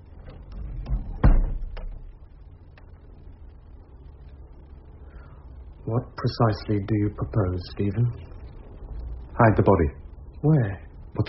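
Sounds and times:
door being shut: 0.2 - 2.1
speech: 5.9 - 8.3, 9.4 - 11.2.

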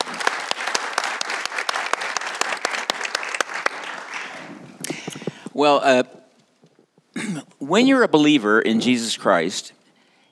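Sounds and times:
audience applause: 0.0 - 4.6
speech: 5.6 - 6.2, 7.7 - 9.8.

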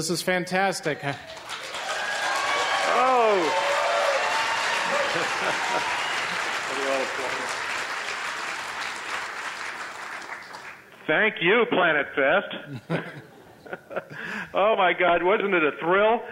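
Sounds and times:
speech: 0.0 - 1.6, 3.0 - 3.6, 5.2 - 6.0, 6.7 - 7.6, 11.1 - 16.3
fans applauding and cheering: 0.8 - 10.9
laughter: 2.8 - 7.8, 12.6 - 14.5.

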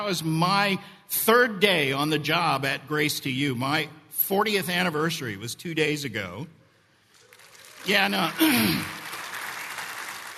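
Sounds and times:
speech: 0.0 - 6.6, 7.8 - 9.0
crowd applauding: 7.1 - 10.3.

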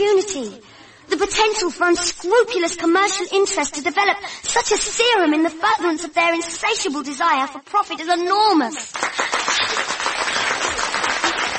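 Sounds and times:
speech: 0.0 - 9.2
audience clapping during a speech: 8.8 - 11.5.

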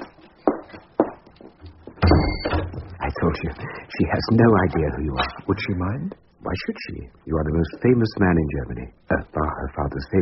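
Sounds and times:
door closing: 1.6 - 3.1
door being locked: 2.0 - 2.9
speech: 3.2 - 10.2.

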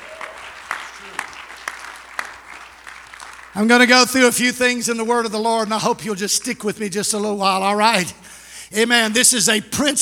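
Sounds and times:
low murmur: 0.0 - 3.6
audience clapping hands: 0.0 - 4.2
speech: 3.6 - 10.0.

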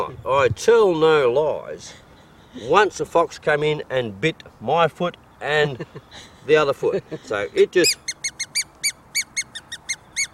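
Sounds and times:
speech: 0.0 - 2.0, 2.6 - 8.0
faint hiss: 0.0 - 10.3
fox-calling whistle imitating mouse squeaks: 7.8 - 10.3.

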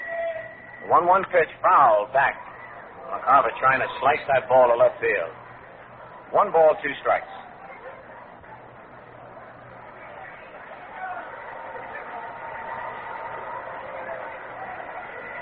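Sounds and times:
ballpark crowd murmur: 0.0 - 15.4
speech: 0.9 - 2.5, 3.1 - 5.4, 6.3 - 7.4.

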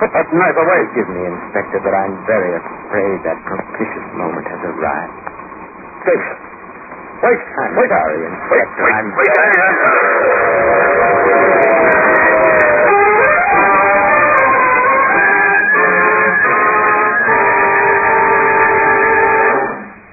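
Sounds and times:
speech: 0.0 - 5.4, 6.0 - 6.5, 7.2 - 12.4
steam locomotive whistle blast: 9.8 - 19.9.

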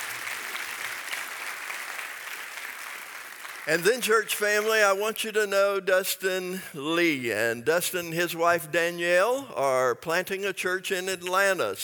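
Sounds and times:
audience applauding: 0.0 - 4.3
speech: 3.7 - 11.8.

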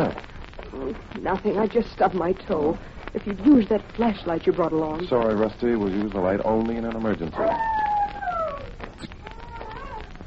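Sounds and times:
speech: 0.1 - 7.8
dog howling: 7.4 - 10.1.

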